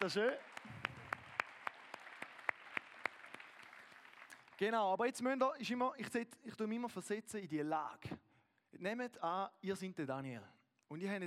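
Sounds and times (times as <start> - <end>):
speech: 0.0 - 0.8, 4.6 - 8.2, 8.8 - 11.2
sparse applause: 0.0 - 4.7.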